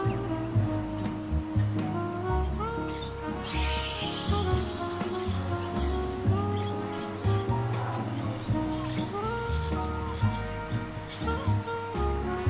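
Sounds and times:
seaside cafe music: 0:00.0 - 0:12.4
bright hissing wash: 0:02.6 - 0:10.4.

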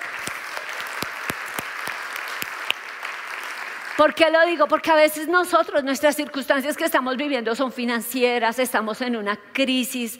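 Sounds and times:
audience applause: 0:00.0 - 0:04.2
speech: 0:04.0 - 0:10.1.

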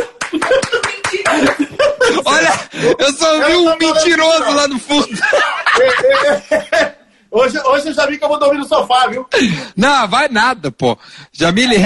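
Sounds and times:
hand clapping: 0:00.0 - 0:01.8
laughter: 0:00.0 - 0:07.1
speech: 0:02.4 - 0:06.6, 0:07.4 - 0:11.8.

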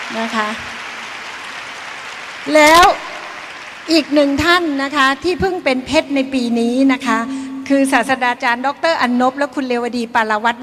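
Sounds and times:
audience applause: 0:00.0 - 0:04.6
speech: 0:00.1 - 0:00.7, 0:02.4 - 0:03.1, 0:03.9 - 0:10.6.

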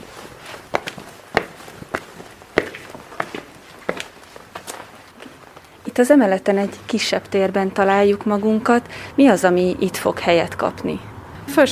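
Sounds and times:
footsteps walking up to the upper floor of a building: 0:00.0 - 0:05.8
speech: 0:06.0 - 0:11.7.

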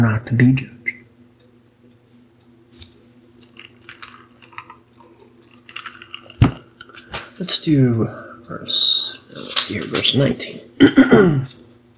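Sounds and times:
speech: 0:00.0 - 0:00.8, 0:07.4 - 0:11.6
man clearing throat: 0:10.8 - 0:11.6.

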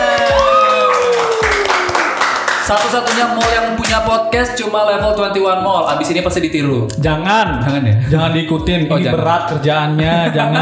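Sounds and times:
hand clapping: 0:00.0 - 0:04.1
speech: 0:02.7 - 0:10.6.

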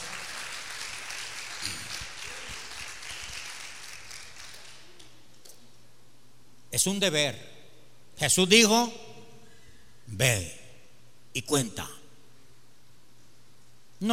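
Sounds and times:
crowd clapping: 0:00.0 - 0:05.1
speech: 0:06.8 - 0:07.5, 0:08.2 - 0:09.1, 0:10.1 - 0:10.6, 0:11.4 - 0:12.0.

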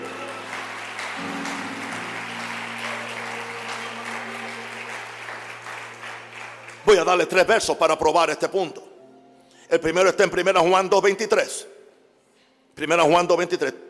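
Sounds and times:
audience applause: 0:00.0 - 0:07.6
low sustained musical tones: 0:00.0 - 0:07.6
speech: 0:06.9 - 0:08.8, 0:09.7 - 0:11.8, 0:12.8 - 0:13.8.

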